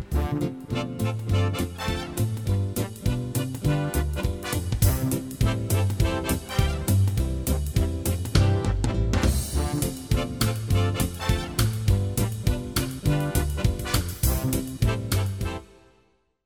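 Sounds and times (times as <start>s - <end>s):
quickstep music: 0.1s - 8.5s, 9.2s - 15.6s.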